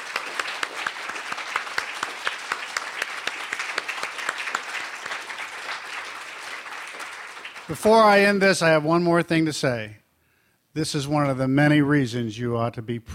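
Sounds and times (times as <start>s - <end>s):
crowd audience applause: 0.0s - 8.4s
speech: 7.7s - 10.0s, 10.8s - 13.1s.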